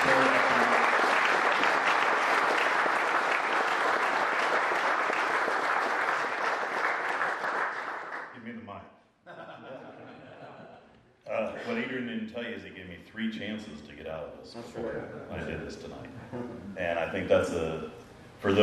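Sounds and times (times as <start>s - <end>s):
audience applause welcoming a speaker at an evening gathering: 0.0s - 8.3s
laughter: 9.3s - 12.0s, 14.7s - 16.8s
speech: 13.3s - 18.6s.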